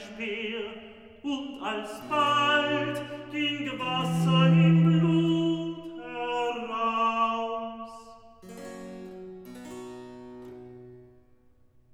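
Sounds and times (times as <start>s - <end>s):
recitative singing: 0.0s - 8.2s.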